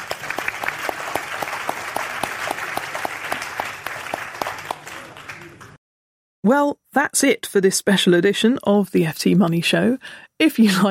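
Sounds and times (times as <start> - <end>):
audience applauding: 0.0 - 5.8
speech: 6.4 - 10.8.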